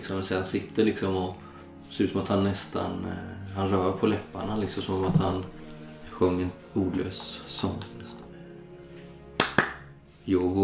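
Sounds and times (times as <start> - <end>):
speech: 0.0 - 5.6, 6.2 - 8.3, 10.3 - 10.6
hands clapping: 9.4 - 9.9.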